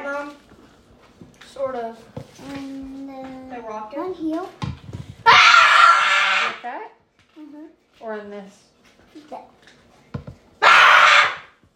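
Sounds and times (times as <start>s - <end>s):
speech: 1.7s - 3.0s, 3.6s - 4.7s, 6.6s - 9.6s
child screaming: 5.2s - 6.6s, 10.6s - 11.6s.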